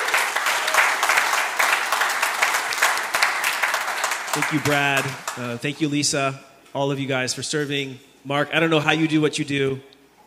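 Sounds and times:
audience applause: 0:00.0 - 0:05.6
speech: 0:04.4 - 0:09.9.

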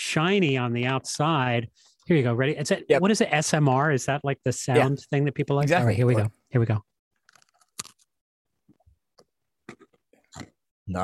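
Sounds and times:
speech: 0:00.1 - 0:06.9, 0:10.9 - 0:11.0
crunching on a split pretzel: 0:07.2 - 0:08.1.

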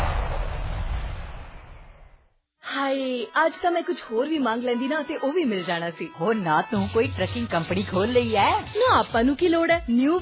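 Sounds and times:
Diwali firecrackers bursting in a radio advert: 0:00.0 - 0:02.3
speech: 0:02.9 - 0:10.2.

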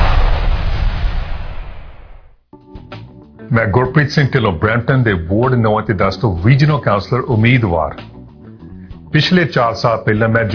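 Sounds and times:
Diwali firecracker burst: 0:00.0 - 0:02.4
speech: 0:03.5 - 0:08.1, 0:09.1 - 0:10.5.

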